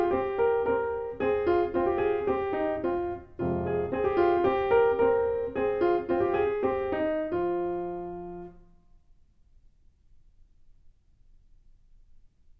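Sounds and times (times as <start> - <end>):
solo piano: 0.0 - 9.0.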